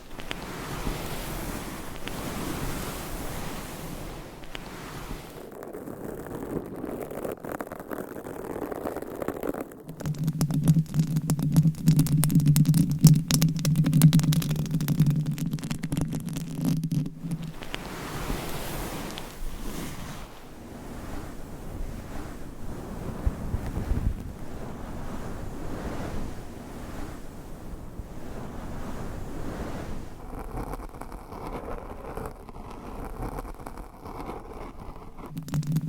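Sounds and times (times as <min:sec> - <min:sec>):
soft airy brushing: 0:00.0 - 0:05.6, 0:09.8 - 0:31.1
nails scratching on microphone covers: 0:00.0 - 0:25.6, 0:29.9 - 0:35.8.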